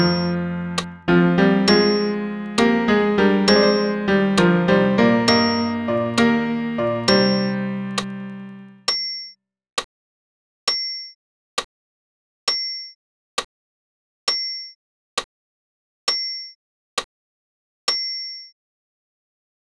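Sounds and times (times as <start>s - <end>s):
piano accompaniment: 0.0s - 8.8s.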